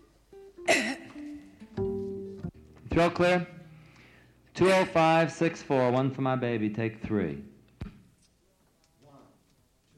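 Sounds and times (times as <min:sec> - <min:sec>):
singer clearing their throat during a recording session: 0:00.7 - 0:01.2
speech: 0:03.0 - 0:03.6, 0:04.6 - 0:07.5.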